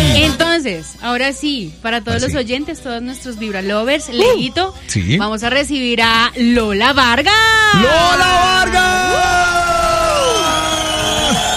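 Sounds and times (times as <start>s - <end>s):
speech: 0.6s - 10.4s
studio audience cheering: 7.7s - 11.5s
high whoops from studio audience: 7.8s - 11.5s.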